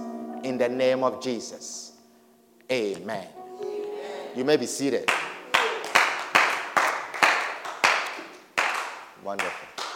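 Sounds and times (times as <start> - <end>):
speech: 0.4 - 1.9, 2.7 - 3.4, 4.4 - 5.3, 9.3 - 9.7
few people clapping: 5.0 - 9.9.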